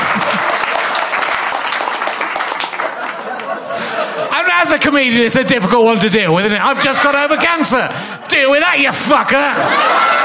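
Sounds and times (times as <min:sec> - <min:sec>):
laughter: 0:00.0 - 0:01.2, 0:02.4 - 0:10.2
audience applause: 0:00.0 - 0:04.3
speech: 0:04.6 - 0:10.2.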